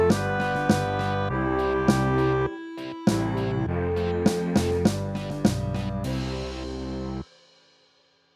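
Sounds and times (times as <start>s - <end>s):
reggae for snare drum: 0.0s - 1.3s, 1.9s - 2.3s, 3.1s - 3.5s, 4.3s - 6.8s.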